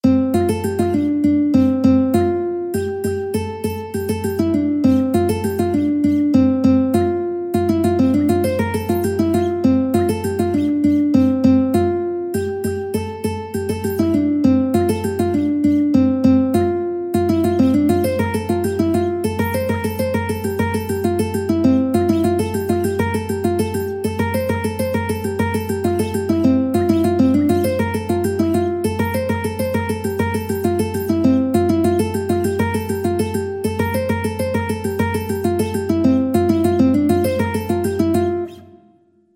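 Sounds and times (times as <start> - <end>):
ukulele: 0.0 - 38.9.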